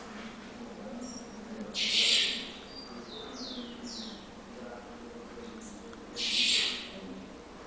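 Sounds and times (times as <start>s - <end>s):
Double-collared seedeater singing a fast twittering high phrase: 1.0s - 4.3s, 5.7s - 6.9s.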